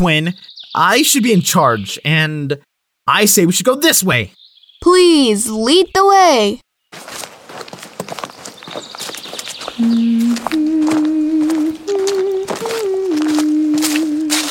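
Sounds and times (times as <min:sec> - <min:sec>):
speech: 0:00.0 - 0:07.2
horse hooves clip-clopping: 0:07.0 - 0:14.4
low sustained tune of held notes: 0:09.8 - 0:14.4.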